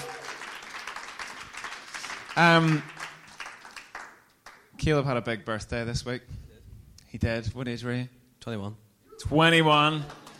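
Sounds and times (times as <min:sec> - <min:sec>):
crowd applause: 0:00.0 - 0:04.2, 0:09.9 - 0:10.3
speech: 0:02.4 - 0:02.9, 0:04.8 - 0:06.4, 0:07.1 - 0:10.2.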